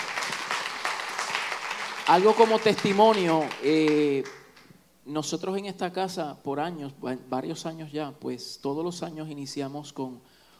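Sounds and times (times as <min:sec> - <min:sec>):
audience applause: 0:00.0 - 0:04.6
speech: 0:02.1 - 0:04.4, 0:05.0 - 0:10.3.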